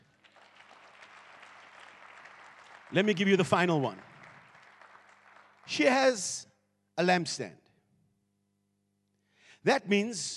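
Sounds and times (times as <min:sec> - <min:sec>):
people clapping hands: 0:00.0 - 0:06.4
speech: 0:02.9 - 0:04.1, 0:05.8 - 0:07.6, 0:09.6 - 0:10.3.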